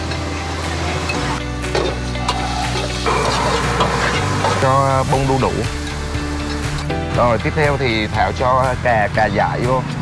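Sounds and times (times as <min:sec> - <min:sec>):
meat stir-fried with lemongrass and shallots: 0:00.0 - 0:07.5
speech: 0:04.6 - 0:05.8, 0:07.2 - 0:09.9.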